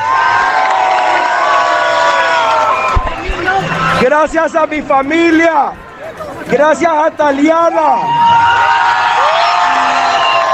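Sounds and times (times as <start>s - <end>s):
crowd applauding: 0.0s - 4.0s, 8.4s - 10.5s
crowd cheering: 0.0s - 4.7s, 7.6s - 10.5s
speech: 4.0s - 9.1s.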